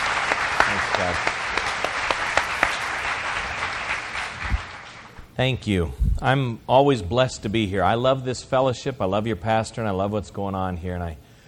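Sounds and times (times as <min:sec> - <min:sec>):
audience applause welcoming a speaker at a church fellowship gathering: 0:00.0 - 0:05.2
speech: 0:01.0 - 0:01.4, 0:05.4 - 0:11.2.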